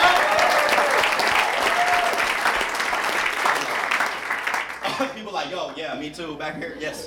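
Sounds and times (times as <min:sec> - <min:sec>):
audience clapping: 0:00.0 - 0:05.8
speech: 0:05.8 - 0:07.0.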